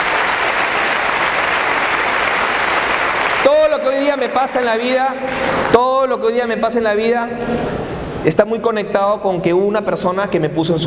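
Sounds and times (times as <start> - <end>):
crowd applause: 0.0 - 5.7
speech: 3.8 - 10.8.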